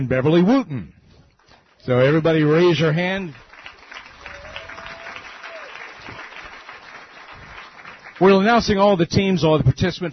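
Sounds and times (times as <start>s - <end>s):
speech: 0.0s - 1.0s, 1.8s - 3.5s, 8.2s - 10.1s
audience applause: 1.6s - 8.8s.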